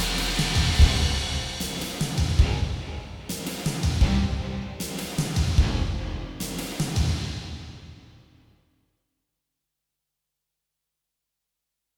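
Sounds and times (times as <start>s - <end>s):
film music: 0.0s - 7.7s.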